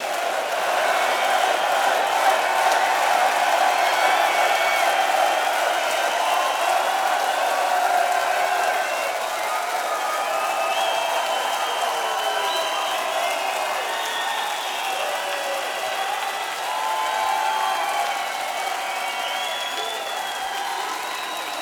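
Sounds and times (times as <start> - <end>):
applause: 0.0 - 21.5.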